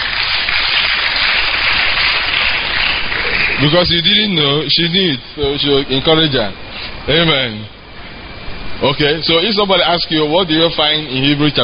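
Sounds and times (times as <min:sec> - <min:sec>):
audience clapping: 0:00.0 - 0:04.3
speech: 0:03.6 - 0:07.8, 0:08.8 - 0:11.6.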